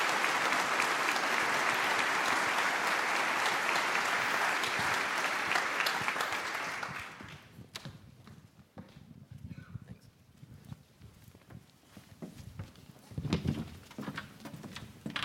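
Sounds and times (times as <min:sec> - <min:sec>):
audience applause: 0:00.0 - 0:07.4.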